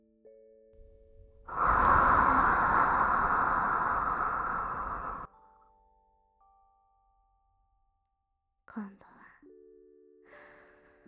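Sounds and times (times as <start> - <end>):
warm breath blown into the ear: 0.8 - 5.3.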